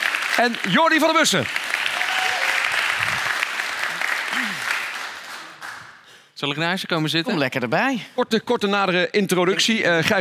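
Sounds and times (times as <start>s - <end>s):
audience applause: 0.0s - 6.0s
speech: 0.4s - 1.7s, 6.4s - 10.1s.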